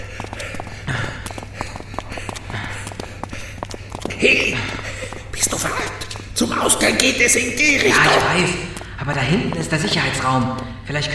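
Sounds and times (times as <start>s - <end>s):
heavy panting: 0.0s - 6.4s
speech: 4.2s - 11.1s.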